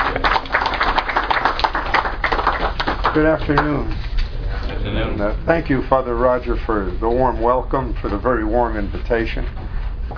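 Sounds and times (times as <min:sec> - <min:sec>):
audience applause welcoming a speaker: 0:00.0 - 0:03.8
speech: 0:03.2 - 0:04.1, 0:04.8 - 0:09.6.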